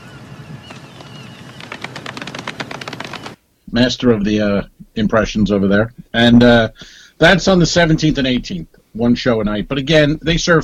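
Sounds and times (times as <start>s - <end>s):
golf clap: 1.5s - 3.4s
speech: 3.7s - 10.6s.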